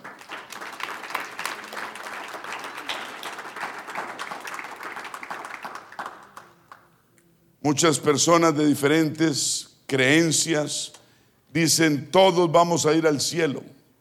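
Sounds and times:
audience applause: 0.0 - 6.5
speech: 7.7 - 13.8.

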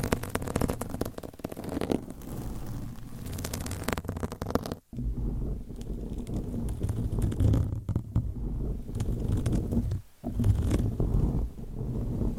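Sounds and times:
microphones scratched with nails and covers: 0.0 - 12.3.

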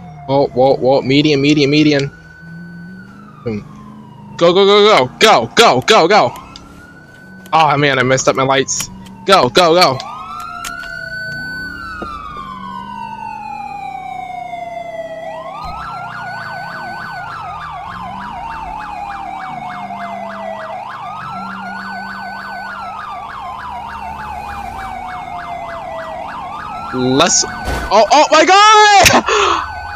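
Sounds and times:
video game police car siren wailing: 0.0 - 29.9
speech: 0.3 - 2.2, 3.4 - 3.7, 4.4 - 6.4, 7.5 - 10.1, 27.2 - 29.7.

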